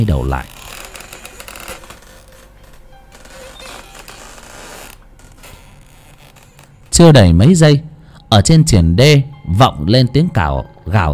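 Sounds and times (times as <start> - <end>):
speech: 0.0 - 0.6, 7.0 - 11.1
door creaking open: 0.0 - 7.2.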